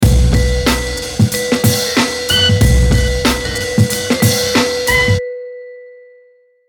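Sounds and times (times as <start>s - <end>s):
hip hop music: 0.0s - 5.2s.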